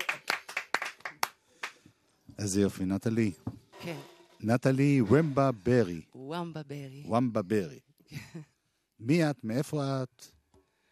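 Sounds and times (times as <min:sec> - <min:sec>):
band members clapping hands: 0:00.0 - 0:01.9
speech: 0:02.4 - 0:10.4.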